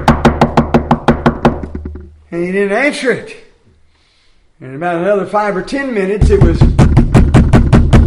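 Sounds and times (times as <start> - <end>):
knocking on a door: 0.0 - 2.1, 6.2 - 8.0
speech: 2.3 - 3.4, 4.6 - 6.7.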